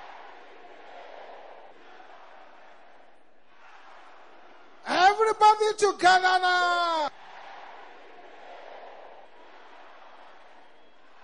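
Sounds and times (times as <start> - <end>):
audience of men shouting loudly: 4.9 - 7.2
speech: 5.3 - 7.2.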